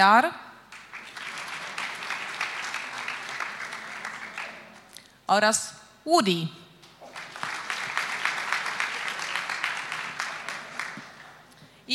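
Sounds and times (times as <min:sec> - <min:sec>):
speech: 0:00.0 - 0:00.5, 0:05.3 - 0:06.6
applause at an awards ceremony: 0:00.7 - 0:05.0, 0:06.8 - 0:11.6.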